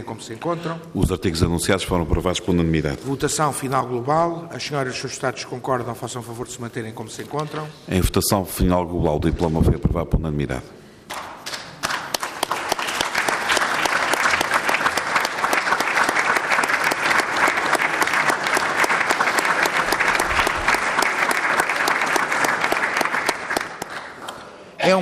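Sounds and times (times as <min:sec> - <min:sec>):
speech: 0:00.0 - 0:11.2
applause in parliament chamber: 0:11.1 - 0:24.5.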